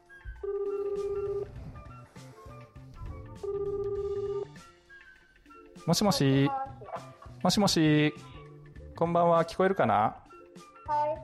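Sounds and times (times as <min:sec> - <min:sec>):
phone ringback tone on an outgoing call: 0:00.3 - 0:01.7, 0:03.1 - 0:04.6
speech: 0:05.8 - 0:06.7, 0:07.4 - 0:08.3, 0:09.0 - 0:10.7.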